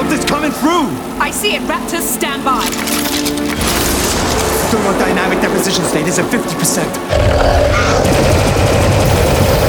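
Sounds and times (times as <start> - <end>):
speech: 0.1 - 3.6, 4.7 - 8.4
rapid automatic gunfire in an audio drama: 8.0 - 9.6.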